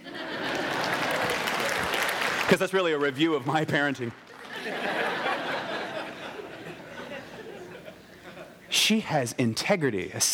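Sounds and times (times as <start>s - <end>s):
laughter: 0.0s - 1.7s, 4.3s - 8.7s
clapping: 0.5s - 3.2s
speech: 2.5s - 5.1s, 8.9s - 10.3s.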